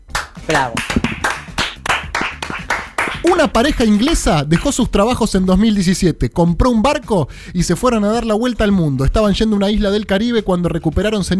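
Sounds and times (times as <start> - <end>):
hands clapping: 0.0 - 4.8
speech: 0.5 - 0.9, 3.2 - 11.3.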